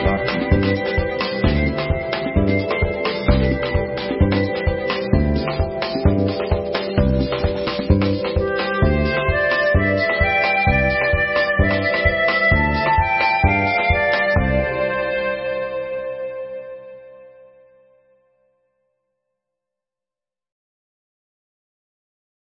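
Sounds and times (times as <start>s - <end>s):
simple song: 0.0s - 17.2s.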